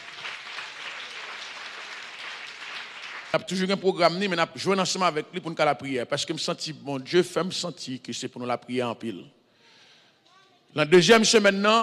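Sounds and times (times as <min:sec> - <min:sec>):
audience applause at a French-language prayer gathering: 0:00.0 - 0:03.5
speech: 0:03.3 - 0:09.4, 0:10.8 - 0:11.8.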